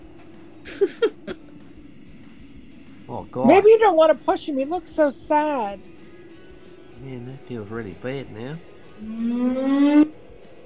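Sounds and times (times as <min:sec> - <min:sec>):
laughter: 0:00.7 - 0:01.4
speech: 0:03.3 - 0:05.9, 0:07.0 - 0:10.2
fire whistle siren: 0:09.0 - 0:10.2.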